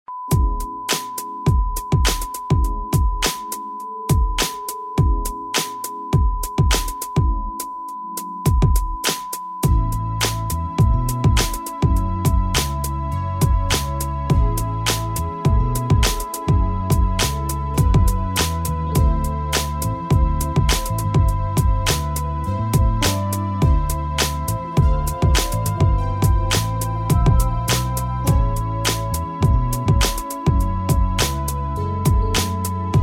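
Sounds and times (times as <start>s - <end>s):
smooth melody: 0.4s - 33.0s.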